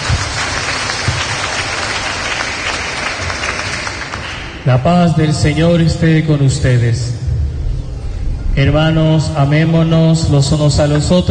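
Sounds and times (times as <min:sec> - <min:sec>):
strong applause from audience: 0:00.0 - 0:04.6
speech: 0:04.7 - 0:07.2, 0:08.6 - 0:11.3.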